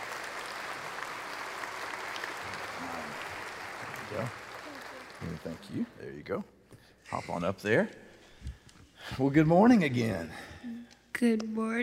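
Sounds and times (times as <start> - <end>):
church congregation applauding two people onto the stage: 0.0 - 6.2
speech: 4.1 - 4.4, 5.2 - 8.0, 9.0 - 10.5, 11.2 - 11.8.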